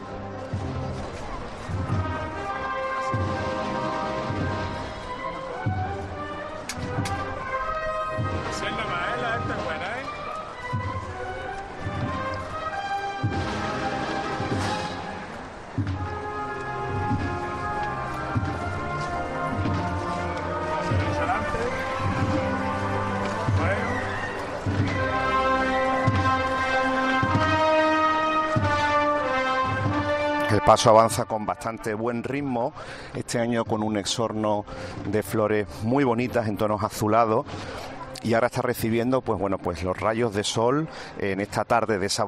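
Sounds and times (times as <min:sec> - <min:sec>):
crowd murmur: 0:00.0 - 0:30.7, 0:37.4 - 0:38.3
Holy Week procession brass band marching music: 0:00.0 - 0:39.7
steady pounding drumbeat: 0:13.2 - 0:30.3
speech: 0:30.7 - 0:42.2.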